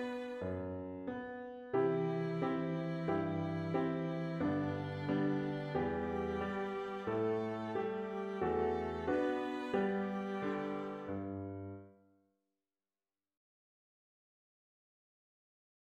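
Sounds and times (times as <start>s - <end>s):
Christmas song on piano at 90 BPM: 0.0s - 12.0s.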